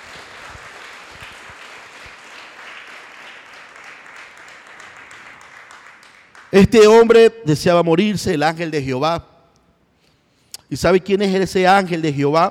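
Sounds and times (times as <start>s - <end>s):
audience applause: 0.0s - 6.5s
speech: 6.5s - 9.3s, 10.7s - 12.4s.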